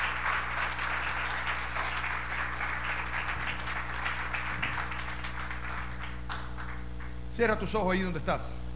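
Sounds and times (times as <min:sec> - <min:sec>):
audience applauding: 0:00.0 - 0:07.8
speech: 0:07.4 - 0:08.6.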